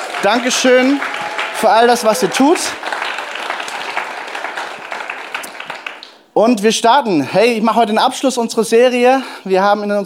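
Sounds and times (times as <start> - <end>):
audience applause: 0.0 - 6.3
speech: 0.2 - 2.9, 6.4 - 10.0.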